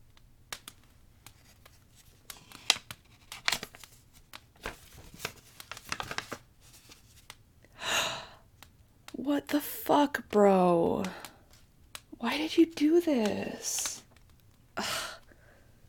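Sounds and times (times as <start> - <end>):
paper envelope torn open: 1.3 - 7.3
speech: 9.3 - 11.2, 12.2 - 13.9.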